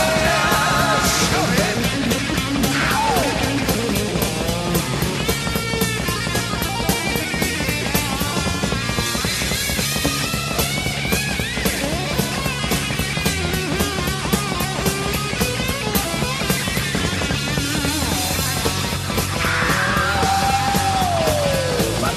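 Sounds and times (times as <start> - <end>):
fast chugging electric guitar riff: 0.0 - 22.1
loud driving hard rock song: 0.0 - 22.1
pounding drums: 0.0 - 22.1.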